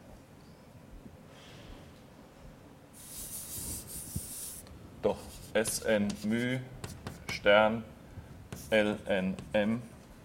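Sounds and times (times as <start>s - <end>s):
someone writing a double-sum equation by hand: 3.0s - 4.6s, 5.2s - 7.4s, 8.5s - 9.6s
speech: 5.1s - 6.8s, 7.4s - 7.9s, 8.7s - 9.9s.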